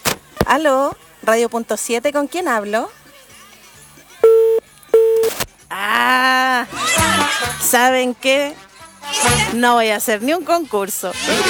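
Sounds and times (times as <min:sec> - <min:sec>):
speech: 0:00.5 - 0:03.0, 0:05.7 - 0:11.4
telephone call tone beeps: 0:04.2 - 0:05.3.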